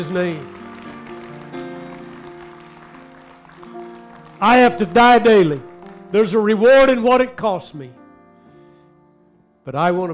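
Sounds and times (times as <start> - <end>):
speech: 0.0 - 0.6, 4.4 - 8.0, 9.6 - 10.1
audience clapping: 0.0 - 7.3
keyboard or organ chords: 0.0 - 9.6.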